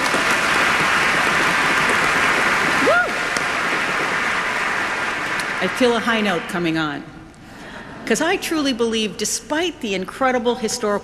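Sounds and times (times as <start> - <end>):
audience applause at a celebratory evening event: 0.0 - 6.8
speech: 5.6 - 7.2, 8.1 - 11.0.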